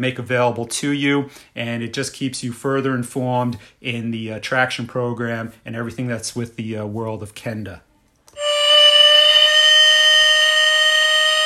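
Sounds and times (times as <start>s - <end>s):
speech: 0.0s - 7.9s
five o'clock factory whistle blast: 8.4s - 11.4s.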